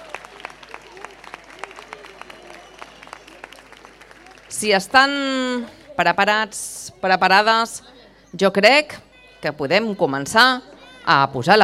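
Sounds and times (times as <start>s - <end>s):
audience applause: 0.0s - 5.4s
speech: 4.5s - 11.6s.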